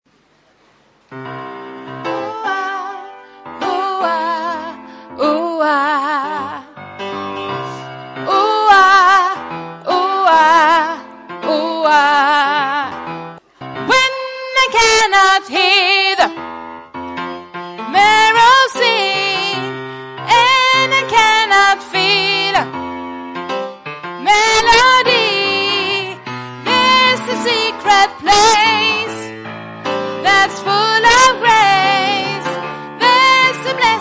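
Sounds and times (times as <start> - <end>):
soprano voice: 2.1 - 6.8, 7.7 - 13.0, 13.8 - 16.4, 17.9 - 22.7, 24.2 - 29.3, 30.2 - 33.9.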